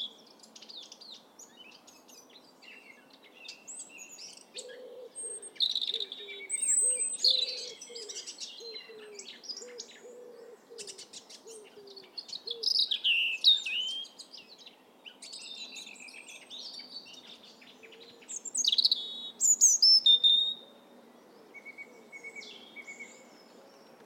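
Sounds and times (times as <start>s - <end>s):
European robin singing: 0.0s - 24.0s
background hiss: 0.0s - 24.0s.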